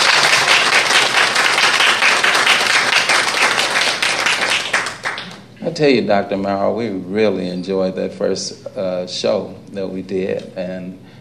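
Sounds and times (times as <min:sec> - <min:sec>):
audience applause: 0:00.0 - 0:05.4
speech: 0:05.8 - 0:11.0.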